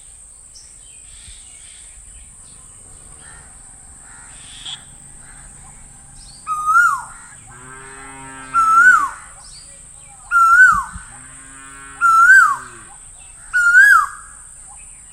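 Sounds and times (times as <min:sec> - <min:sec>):
low drawn-out moaning sound: 0:02.1 - 0:13.2
bird repeating a bright whistled note: 0:02.4 - 0:07.4, 0:08.3 - 0:11.1, 0:12.0 - 0:12.8, 0:13.6 - 0:14.4.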